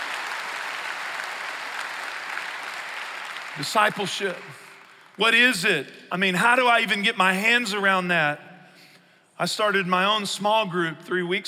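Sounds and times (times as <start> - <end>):
crowd applauding: 0.0 - 5.2
speech: 3.6 - 4.6, 5.2 - 8.4, 9.4 - 11.4.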